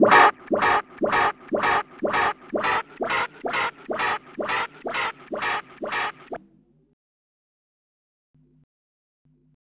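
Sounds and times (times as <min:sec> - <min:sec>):
Rhodes electric piano effects: 0:00.0 - 0:06.2.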